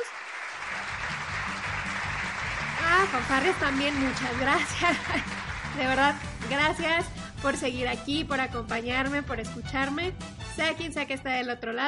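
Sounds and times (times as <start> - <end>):
applause: 0.0 - 6.9
speech: 3.1 - 11.8
laughter: 3.2 - 5.8.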